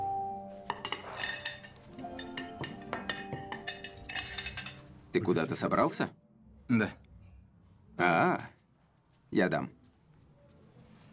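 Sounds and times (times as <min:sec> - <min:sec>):
dishes and cutlery clattering as plates are stacked and cleared after dinner: 0:00.7 - 0:05.0
speech: 0:05.2 - 0:07.0, 0:08.0 - 0:08.5, 0:09.3 - 0:09.8.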